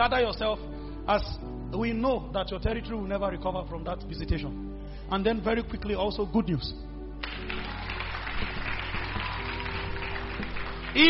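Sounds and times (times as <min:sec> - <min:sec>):
speech: 0:00.0 - 0:07.6
audience clapping: 0:07.2 - 0:11.0.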